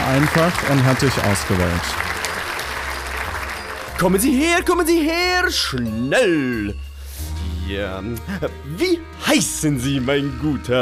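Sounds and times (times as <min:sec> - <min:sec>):
audience applause: 0:00.0 - 0:04.3
speech: 0:00.1 - 0:02.2, 0:04.0 - 0:06.8, 0:07.7 - 0:10.8.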